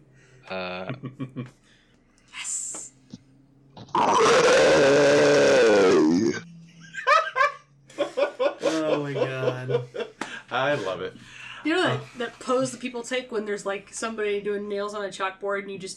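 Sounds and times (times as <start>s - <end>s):
speech: 0.5s - 1.8s, 10.9s - 15.9s
person roaring: 3.9s - 6.4s
giggles and laughter: 6.7s - 10.2s.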